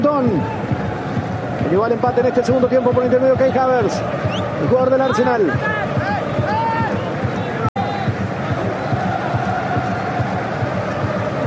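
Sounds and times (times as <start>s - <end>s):
German football fans cheering in a stadium: 0.0s - 11.4s
speech: 0.1s - 0.6s, 1.7s - 5.9s.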